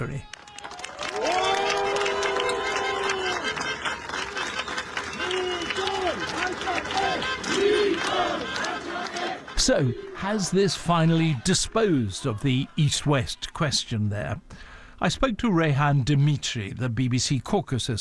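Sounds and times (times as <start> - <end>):
speech: 0.0 - 0.4, 9.6 - 17.9
supporters clapping: 0.0 - 12.6
supporters cheering the Armenian Prime Minister at campaign offices: 0.3 - 13.5.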